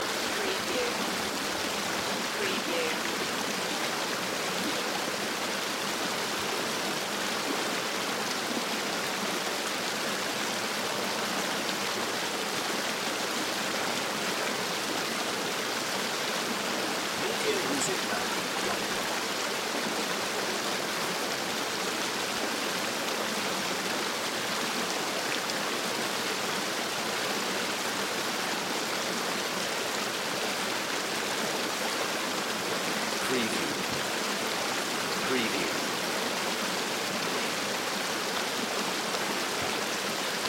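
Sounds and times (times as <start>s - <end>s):
river flowing: 0.0s - 40.4s.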